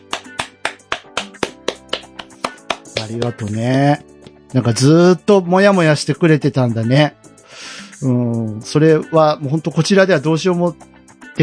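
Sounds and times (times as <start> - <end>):
crisp handclaps: 0.0 - 4.4
speech: 3.0 - 7.2, 8.0 - 11.4.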